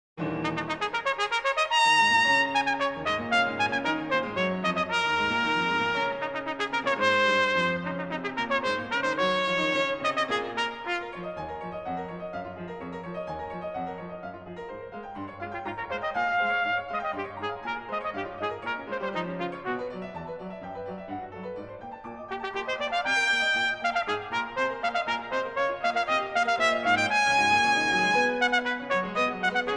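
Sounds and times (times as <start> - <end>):
trumpet and piano sonata: 0.2 - 29.7.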